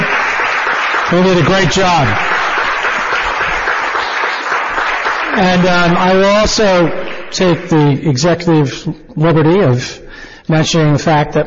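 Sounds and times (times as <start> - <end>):
audience applause honoring marathon organizers: 0.0 - 7.8
speech: 1.1 - 2.4, 5.4 - 11.4.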